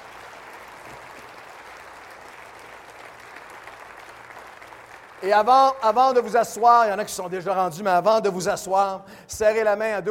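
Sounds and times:
audience applauding: 0.0 - 6.4
speech: 5.2 - 10.0.

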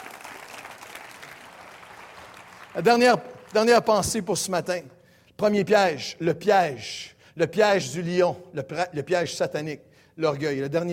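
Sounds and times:
church congregation applauding during a service: 0.0 - 4.1
speech: 2.8 - 10.9.

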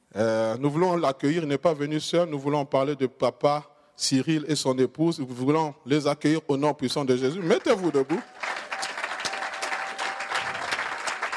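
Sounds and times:
speech: 0.2 - 8.4
crowd clapping: 7.3 - 11.3
faint cheers: 8.2 - 11.3.

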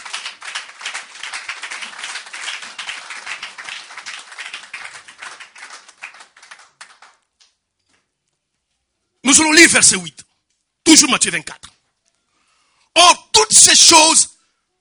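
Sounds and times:
church congregation clapping in praise during a sermon: 0.0 - 7.6
speech: 9.3 - 10.2, 10.9 - 11.7, 13.0 - 14.3.

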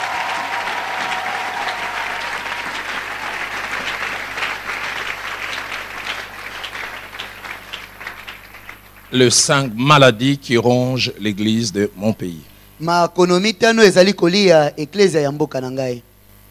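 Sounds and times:
church congregation clapping during worship: 0.0 - 9.8
speech: 9.1 - 16.1.

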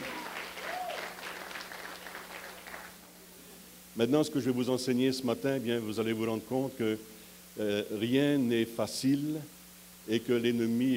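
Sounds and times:
audience applauding: 0.0 - 3.0
speech: 4.0 - 10.9.

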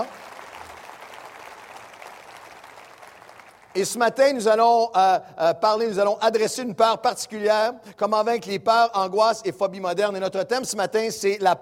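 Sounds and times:
audience applause: 0.0 - 3.8
speech: 3.7 - 11.6.

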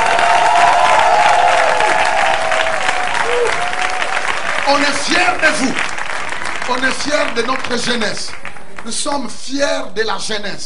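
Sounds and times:
tonal cheering calls: 0.0 - 7.5
audience at a Christian gathering clapping for the young people: 0.0 - 9.4
speech: 4.8 - 5.9, 6.7 - 10.6.

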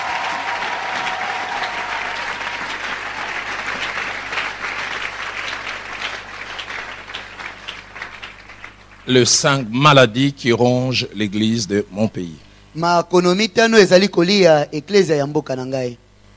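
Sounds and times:
church congregation applauding to acclaim the Lord: 0.0 - 9.6
speech: 9.1 - 16.0.

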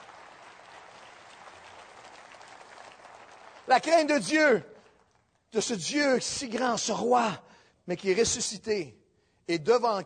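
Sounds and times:
audience applause: 0.0 - 4.0
speech: 3.7 - 4.7, 5.5 - 10.0.

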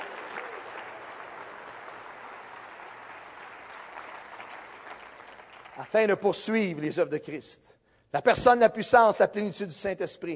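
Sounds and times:
audience applause: 0.0 - 6.2
speech: 5.8 - 10.3.

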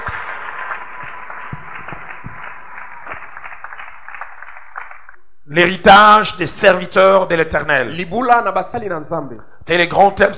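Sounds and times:
church congregation cheering and applauding the Lord: 0.0 - 5.3
speech: 5.5 - 10.3.

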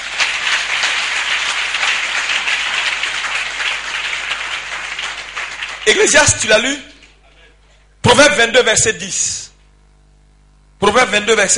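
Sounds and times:
church congregation clapping acclaiming the Lord: 0.0 - 7.3
speech: 5.9 - 6.9, 8.2 - 9.4, 10.8 - 11.5.

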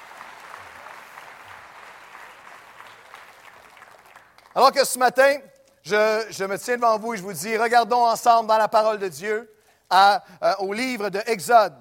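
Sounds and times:
audience applauding: 0.0 - 4.6
speech: 4.6 - 11.7.

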